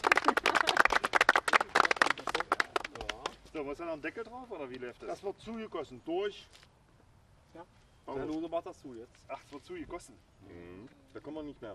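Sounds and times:
applause: 0.0s - 3.4s
speech: 3.7s - 6.7s, 7.6s - 11.7s.

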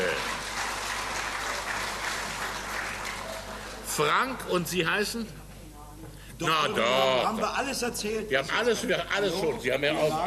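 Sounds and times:
audience applause: 0.0s - 4.2s
speech: 4.0s - 5.4s, 6.4s - 10.2s.

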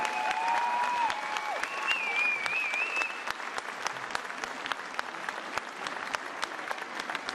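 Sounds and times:
audience applause: 0.0s - 7.3s
whistling tones: 1.6s - 3.3s.

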